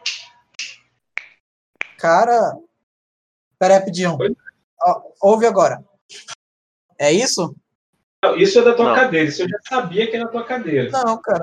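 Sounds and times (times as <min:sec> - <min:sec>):
finger snapping: 0:00.0 - 0:02.0
speech: 0:02.0 - 0:02.7, 0:03.6 - 0:06.4, 0:07.0 - 0:07.6, 0:08.2 - 0:11.4.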